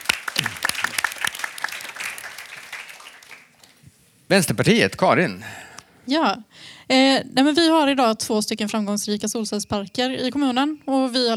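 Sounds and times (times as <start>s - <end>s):
audience applause: 0.0s - 3.8s
speech: 4.3s - 11.3s.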